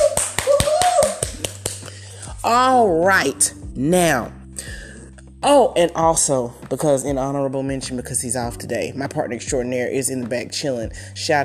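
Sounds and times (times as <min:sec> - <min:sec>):
sustained voiced tone like a whoop: 0:00.0 - 0:01.6
audience applause of sharp separate claps: 0:00.0 - 0:02.0
speech: 0:02.5 - 0:04.8, 0:05.4 - 0:11.4.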